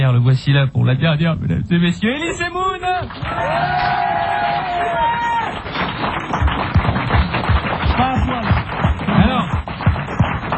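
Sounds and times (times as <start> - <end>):
speech: 0.2 - 5.0
audience applause: 3.0 - 10.5.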